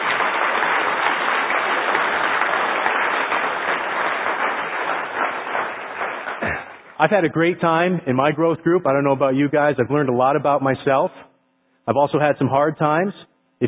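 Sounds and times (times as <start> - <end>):
audience applause: 0.0 - 7.2
speech: 7.0 - 11.3, 11.9 - 13.6.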